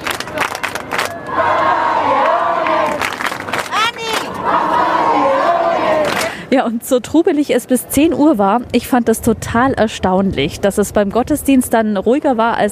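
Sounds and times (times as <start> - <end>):
crowd shouting calls for the Pope: 0.0 - 6.3
speech: 6.5 - 12.6.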